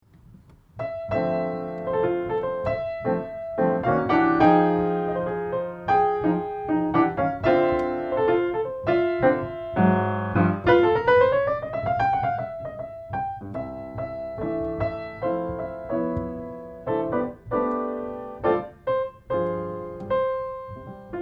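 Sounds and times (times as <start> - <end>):
solo piano: 0.0 - 21.2.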